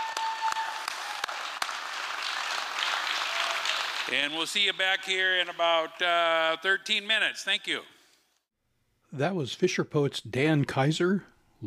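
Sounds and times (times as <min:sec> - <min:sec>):
sharper individual claps: 0:00.0 - 0:04.1
audience clapping: 0:00.0 - 0:05.0
speech: 0:04.1 - 0:08.0, 0:09.1 - 0:11.6.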